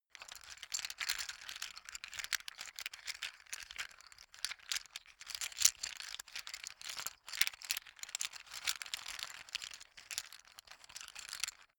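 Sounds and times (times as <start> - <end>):
poker chips being handled: 0.2 - 11.6.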